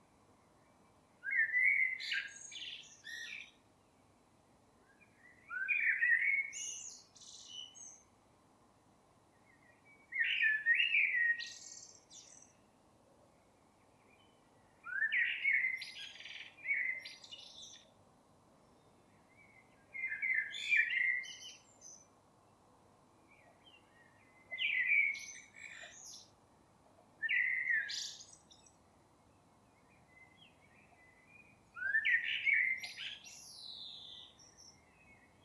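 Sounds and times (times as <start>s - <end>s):
common blackbird singing whistled phrases: 1.2s - 3.6s, 5.2s - 8.0s, 10.1s - 12.5s, 14.8s - 17.8s, 19.5s - 21.8s, 24.5s - 26.3s, 27.2s - 28.6s, 30.2s - 35.4s.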